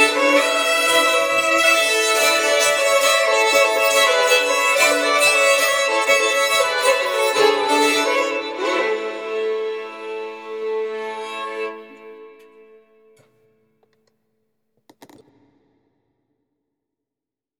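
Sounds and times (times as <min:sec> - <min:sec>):
Swedish bagpipe playing a polska: 0:00.0 - 0:12.4.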